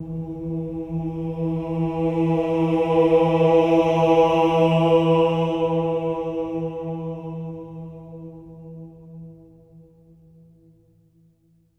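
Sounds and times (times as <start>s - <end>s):
choir of voices: 0.0s - 10.3s.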